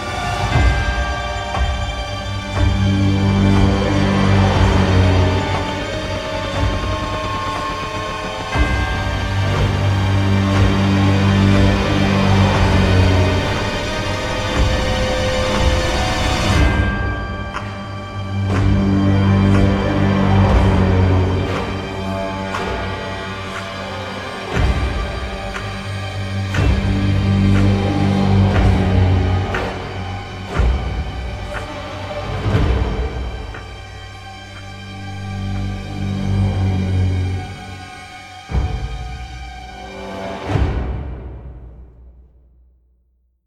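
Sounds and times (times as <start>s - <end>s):
string instruments playing: 0.0s - 42.1s.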